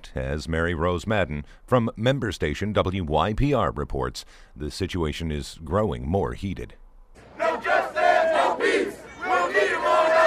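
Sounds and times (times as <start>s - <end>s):
speech: 0.0s - 6.8s
protest crowd outside police station: 7.2s - 10.2s.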